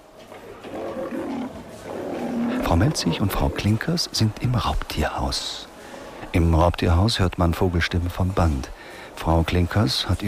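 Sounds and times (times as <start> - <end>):
lion roaring: 0.3 - 4.2
speech: 2.7 - 5.7, 6.3 - 10.2.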